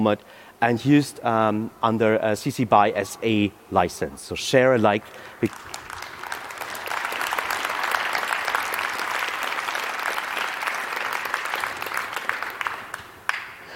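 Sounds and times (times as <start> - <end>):
speech: 0.0 - 5.8
audience applause: 5.4 - 13.6.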